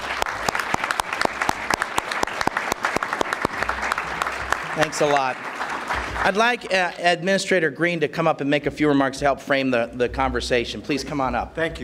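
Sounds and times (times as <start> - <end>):
audience applause: 0.0 - 7.0
speech: 4.8 - 5.5, 6.2 - 11.8.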